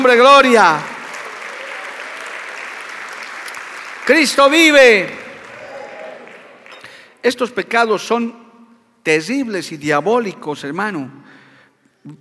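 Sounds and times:
speech: 0.0 - 0.9, 4.0 - 5.2, 7.2 - 8.4, 9.0 - 11.4
audience applause: 0.4 - 6.8.

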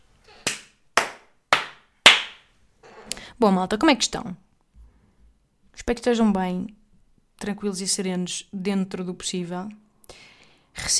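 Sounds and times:
clapping: 0.4 - 2.4
speech: 3.4 - 4.4, 5.9 - 6.8, 7.4 - 10.9.

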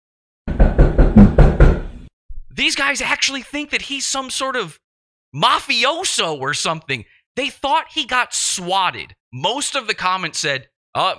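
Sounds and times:
loud, heavy knocking on a door: 0.5 - 2.1
speech: 2.6 - 11.1.

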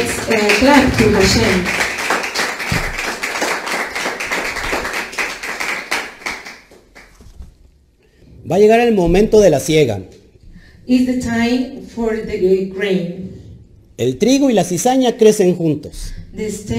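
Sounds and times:
crowd applauding: 0.0 - 7.2
speech: 0.3 - 1.8, 8.5 - 10.2, 10.9 - 13.4, 14.0 - 16.7.

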